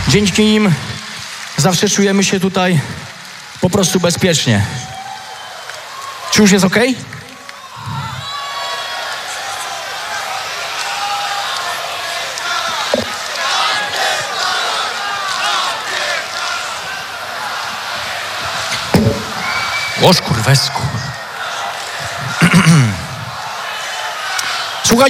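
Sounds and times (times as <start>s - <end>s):
festival crowd at Pol'and'Rock in Poland cheering and applauding the event crew: 0.0s - 25.0s
speech: 0.1s - 0.9s, 1.6s - 3.0s, 3.6s - 4.9s, 6.4s - 7.1s, 20.0s - 21.0s
brief thumps: 18.7s - 19.5s.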